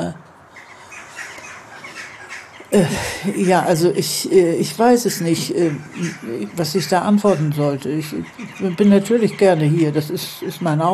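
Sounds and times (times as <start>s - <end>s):
magpies chattering: 0.0s - 10.9s
speech: 2.7s - 10.9s.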